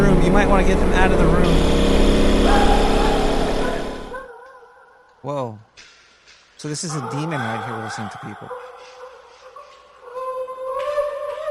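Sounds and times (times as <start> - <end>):
Ford Bronco engine revving: 0.0 - 4.2
speech: 0.3 - 2.9, 5.2 - 5.9, 6.6 - 8.7.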